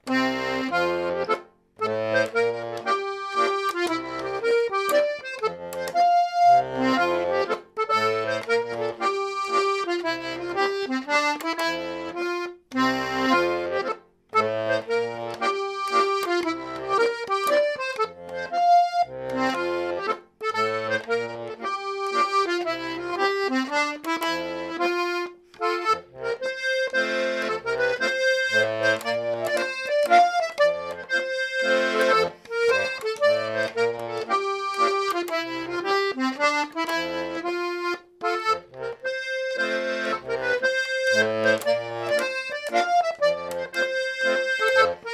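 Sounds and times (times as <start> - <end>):
folk mazurka: 0.0 - 45.1.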